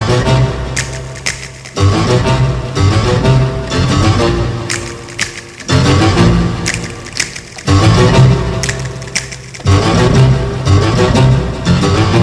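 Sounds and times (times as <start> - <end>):
piano: 0.0 - 12.2.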